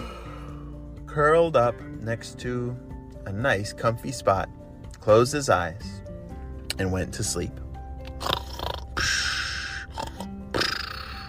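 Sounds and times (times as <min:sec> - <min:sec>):
speech: 0:01.2 - 0:06.0, 0:06.8 - 0:07.6
sleeping cheetah snoring: 0:08.1 - 0:11.2.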